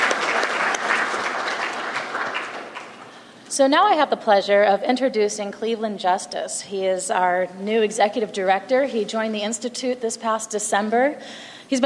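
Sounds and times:
audience applause: 0:00.0 - 0:03.2
speech: 0:03.6 - 0:11.8.

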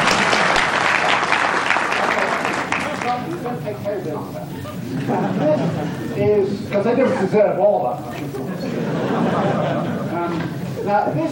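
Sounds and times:
audience applause: 0:00.0 - 0:03.4
speech: 0:03.7 - 0:11.2
laughter: 0:04.2 - 0:10.9.

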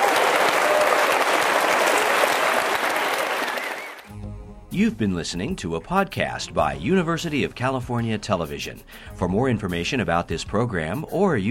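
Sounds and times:
audience round of applause: 0:00.0 - 0:04.1
speech: 0:04.8 - 0:11.5.

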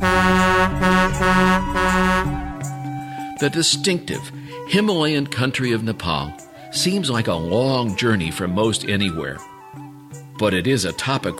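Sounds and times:
truck horn honking: 0:00.0 - 0:02.6
speech: 0:03.4 - 0:09.5, 0:10.4 - 0:11.3.

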